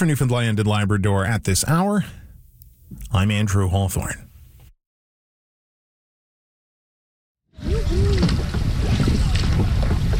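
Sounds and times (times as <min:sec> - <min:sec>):
speech: 0:00.0 - 0:02.2, 0:02.9 - 0:04.3
water wash from canoes paddled on Gander Lake in central Newfoundland: 0:07.6 - 0:10.1
wind noise on Gander Lake in central Newfoundland: 0:07.6 - 0:10.1.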